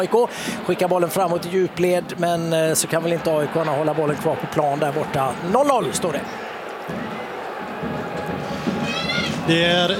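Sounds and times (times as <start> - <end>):
speech: 0.0 - 7.9, 9.5 - 9.9
home crowd cheering at a women's football match in Vittsjö: 0.0 - 9.9.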